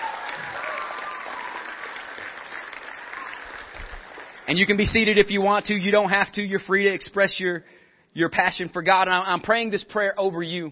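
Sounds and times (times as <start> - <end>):
audience applause and hand clapping: 0.0 - 5.2
speech: 4.5 - 10.6.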